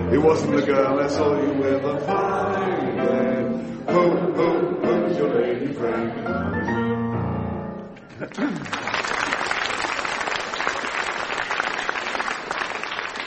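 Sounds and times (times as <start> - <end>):
speech: 0.1 - 6.9, 8.1 - 9.0
applause: 8.2 - 13.2.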